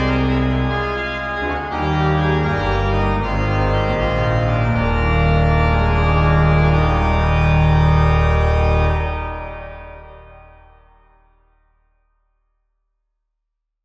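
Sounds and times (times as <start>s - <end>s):
classical prelude in E-flat major: 0.0s - 10.6s.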